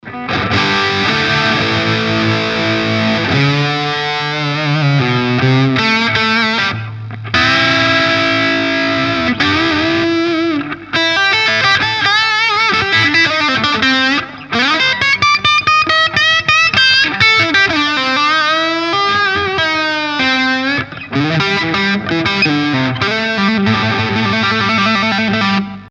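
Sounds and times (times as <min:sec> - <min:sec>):
Epiphone Les Paul Custom bridge pickup distorted electric guitar: 0:00.0 - 0:25.8.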